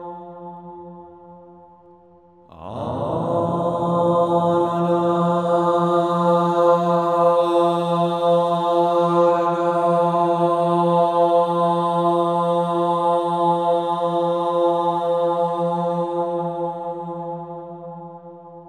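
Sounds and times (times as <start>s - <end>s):
monks chanting Sanskrit: 2.5s - 17.2s.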